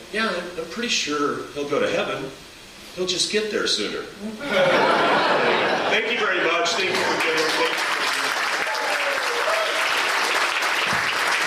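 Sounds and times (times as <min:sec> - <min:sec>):
speech: 0:00.1 - 0:08.0
laughter: 0:04.4 - 0:08.4
audience closing applause: 0:06.1 - 0:11.4.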